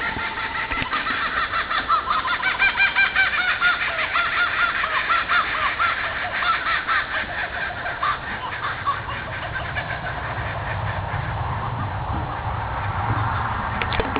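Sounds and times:
laughing kookaburra laughter: 0.0s - 14.1s.

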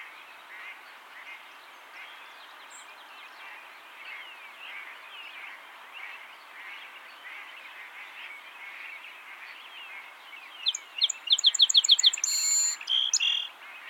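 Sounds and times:
song sparrow Melospiza melodia singing: 10.6s - 13.5s.

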